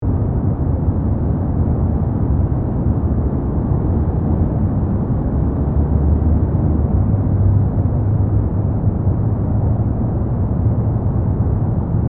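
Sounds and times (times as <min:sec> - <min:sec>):
traffic ambience: 0:00.0 - 0:12.0.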